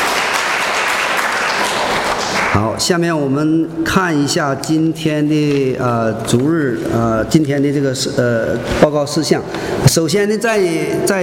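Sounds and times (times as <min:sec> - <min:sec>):
church congregation clapping during a Sunday service: 0:00.0 - 0:03.0
speech: 0:02.6 - 0:11.2.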